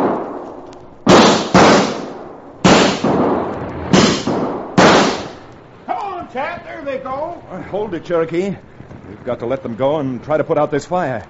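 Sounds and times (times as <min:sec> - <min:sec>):
gunshots fired to chase off coyotes, echoing: 0:00.0 - 0:06.3
speech: 0:06.3 - 0:11.2.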